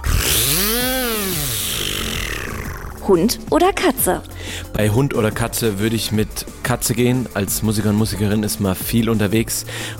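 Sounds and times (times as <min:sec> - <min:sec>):
mouth imitation of a buzzing firework spinner: 0:00.0 - 0:03.6
speech: 0:03.1 - 0:09.9.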